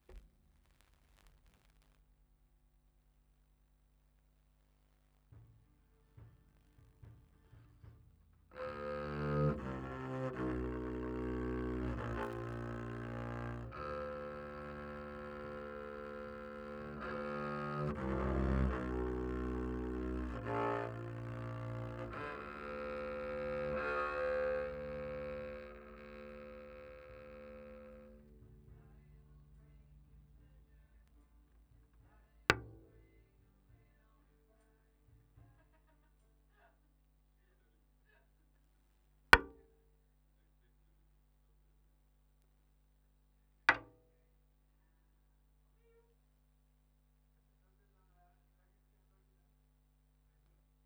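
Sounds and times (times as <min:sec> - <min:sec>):
bass guitar recorded by direct input: 0:08.6 - 0:33.4.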